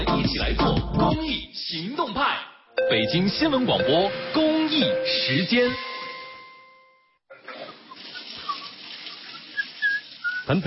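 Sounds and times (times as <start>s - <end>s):
speech: 0.3s - 5.9s, 10.5s - 10.6s
water running from an open tap: 7.5s - 10.6s.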